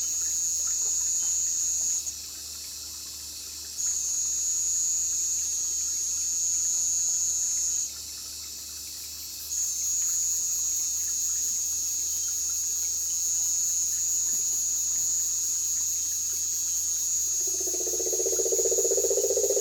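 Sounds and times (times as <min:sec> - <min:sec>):
marine toad Rhinella marina: 0:12.2 - 0:19.6.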